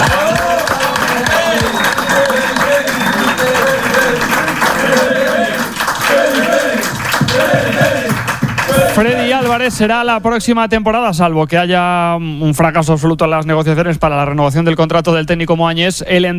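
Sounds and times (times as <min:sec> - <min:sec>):
applause: 0:00.0 - 0:09.7
speech: 0:09.0 - 0:16.3.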